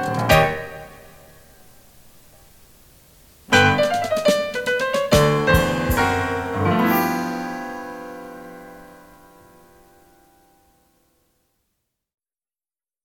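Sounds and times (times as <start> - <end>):
blues music: 0.0 - 1.8, 3.4 - 10.3.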